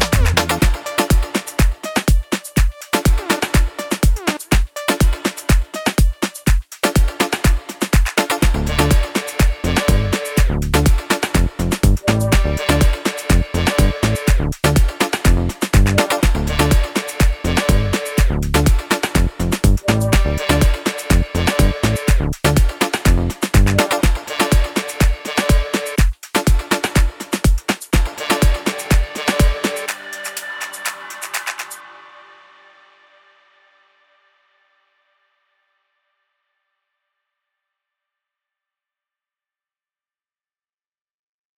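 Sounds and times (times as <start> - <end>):
afrotrap music: 0.0 - 31.8.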